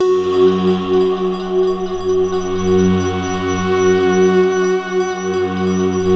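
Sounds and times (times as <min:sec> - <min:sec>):
mysterious synth pad: 0:00.0 - 0:06.1.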